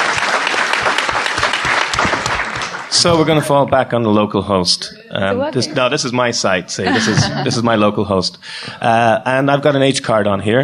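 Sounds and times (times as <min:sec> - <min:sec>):
audience applause at a tech presentation: 0:00.0 - 0:03.6
speech: 0:03.0 - 0:10.6
laughter: 0:05.2 - 0:09.0.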